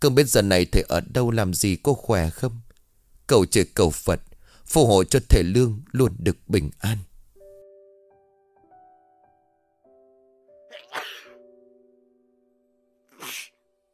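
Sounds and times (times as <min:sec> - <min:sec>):
speech: 0:00.0 - 0:02.6, 0:03.3 - 0:07.1
repeated sneezing: 0:10.7 - 0:11.4, 0:13.1 - 0:13.6.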